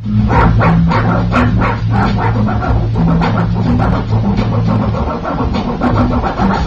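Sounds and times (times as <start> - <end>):
French bulldog scratching a DJ record: 0.0 - 6.6.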